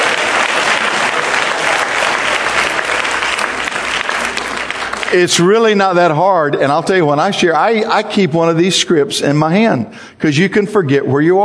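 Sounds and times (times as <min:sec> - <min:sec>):
church congregation applauding: 0:00.0 - 0:06.1
speech: 0:05.1 - 0:11.4.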